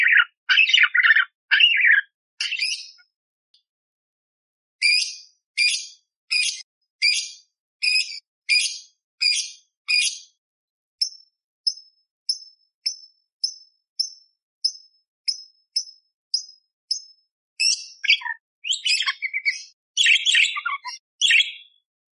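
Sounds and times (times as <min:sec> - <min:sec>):
budgerigar warbling song: 0:00.0 - 0:03.0, 0:04.8 - 0:10.2, 0:17.6 - 0:21.8.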